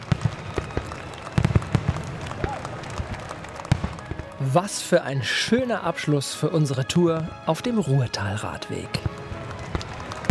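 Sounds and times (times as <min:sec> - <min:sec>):
fireworks exploding: 0:00.0 - 0:04.4, 0:09.0 - 0:10.2
speech: 0:04.4 - 0:09.2.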